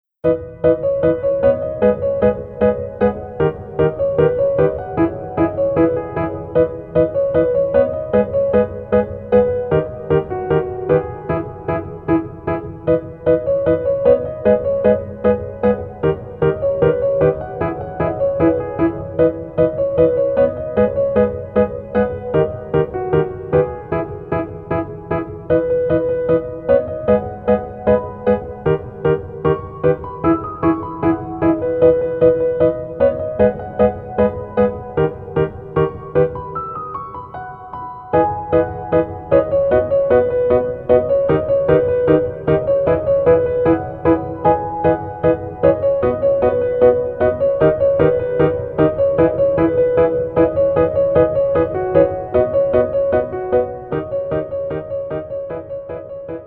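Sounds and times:
piano: 0.0s - 56.4s.

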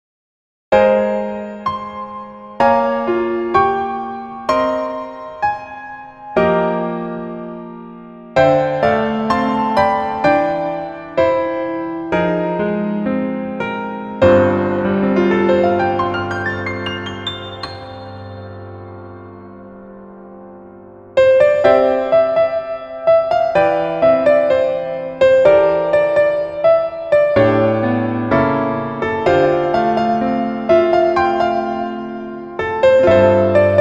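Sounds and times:
piano melody backing track in female key: 0.7s - 33.7s.

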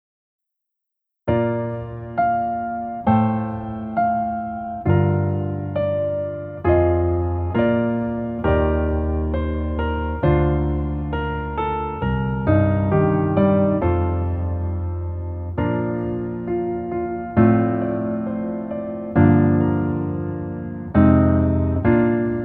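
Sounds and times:
piano: 1.2s - 22.4s.

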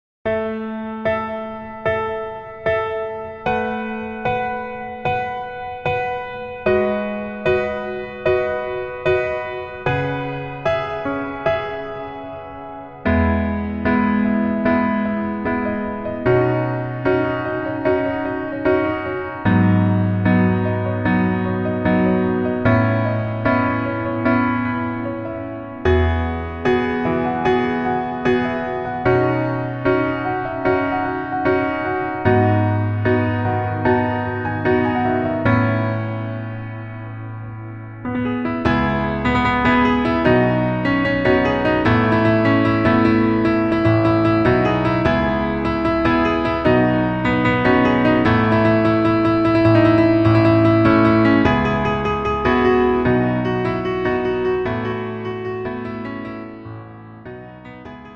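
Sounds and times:
piano melody backing track: 0.2s - 58.1s.

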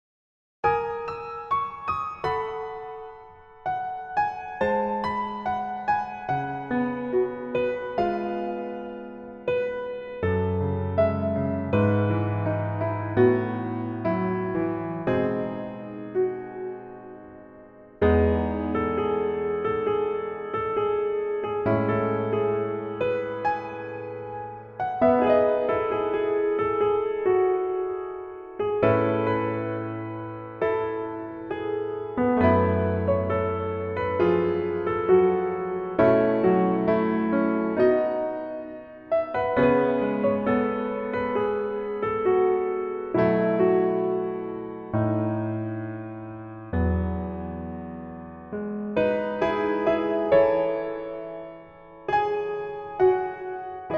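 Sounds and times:
piano backing track: 0.6s - 53.9s.

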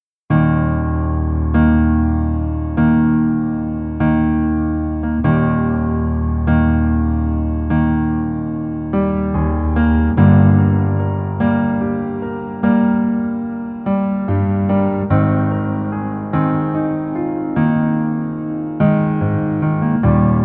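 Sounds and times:
piano version melody backing track: 0.3s - 20.4s.

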